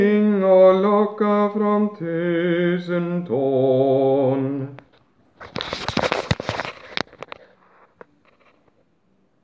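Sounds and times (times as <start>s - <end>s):
tenor singing: 0.0s - 4.9s.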